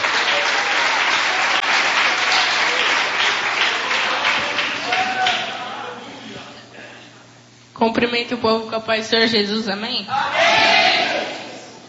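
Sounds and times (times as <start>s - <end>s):
audience applause: 0.0s - 5.8s
speech: 7.8s - 11.4s.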